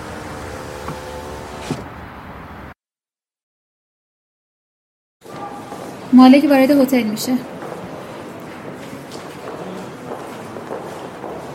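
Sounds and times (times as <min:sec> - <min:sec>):
car power window rolling up with whirring motor hum: 0:00.0 - 0:02.0
speech: 0:06.2 - 0:07.6.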